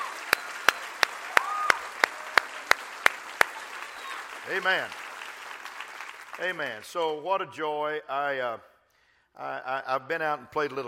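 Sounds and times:
audience hand clapping: 0:00.0 - 0:07.0
speech: 0:04.5 - 0:05.0, 0:06.4 - 0:08.7, 0:09.4 - 0:10.8.

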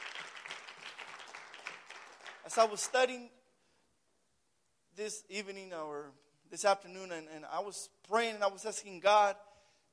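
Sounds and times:
audience clapping: 0:00.0 - 0:03.1
speech: 0:02.4 - 0:03.4, 0:05.0 - 0:09.9.

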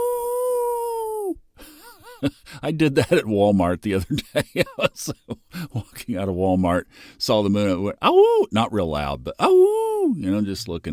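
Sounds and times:
human imitating a wolf howl: 0:00.0 - 0:01.4, 0:09.4 - 0:10.2
speech: 0:02.2 - 0:10.9
laughter: 0:04.0 - 0:05.9.

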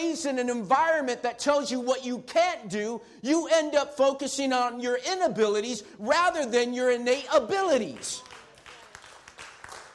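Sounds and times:
speech: 0:00.0 - 0:08.4
audience clapping: 0:07.9 - 0:09.9.

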